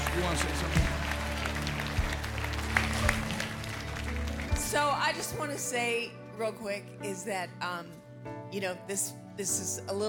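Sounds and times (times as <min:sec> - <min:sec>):
audience clapping: 0:00.0 - 0:06.0
speech: 0:00.2 - 0:01.0, 0:04.7 - 0:10.0.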